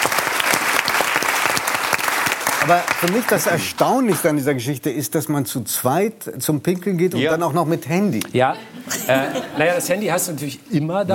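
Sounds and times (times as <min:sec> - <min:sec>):
audience applause: 0:00.0 - 0:04.3
speech: 0:02.6 - 0:11.1
laughter: 0:08.4 - 0:10.2.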